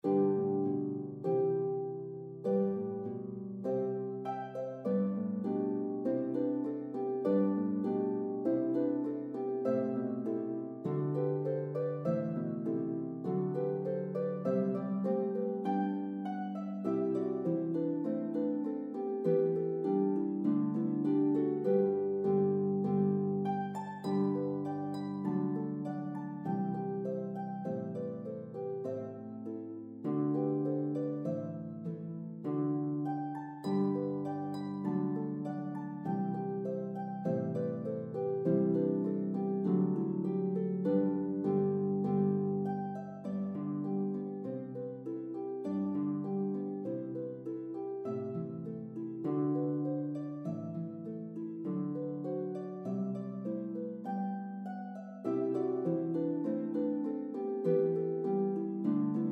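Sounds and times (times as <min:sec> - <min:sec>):
harp duet: 0:00.0 - 0:59.3.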